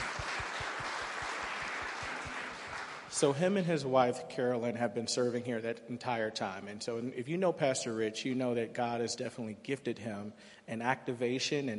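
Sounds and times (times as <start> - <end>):
audience applause: 0.0 - 3.3
speech: 3.2 - 11.7.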